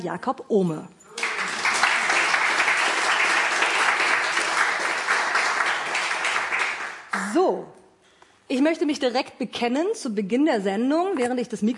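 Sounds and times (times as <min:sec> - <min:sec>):
speech: 0:00.0 - 0:01.0, 0:07.2 - 0:07.8, 0:08.5 - 0:11.7
audience applause: 0:01.1 - 0:07.1.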